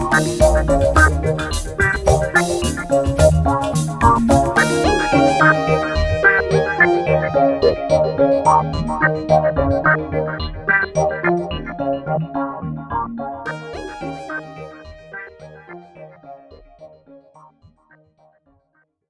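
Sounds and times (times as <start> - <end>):
trance music: 0.0 - 11.3, 13.5 - 16.5.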